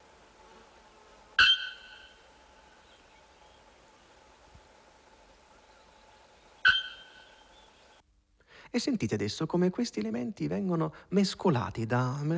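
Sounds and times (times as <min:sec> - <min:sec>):
bare-throated bellbird (araponga) loud metallic call: 0:01.4 - 0:02.2, 0:06.6 - 0:07.5
speech: 0:08.7 - 0:12.3.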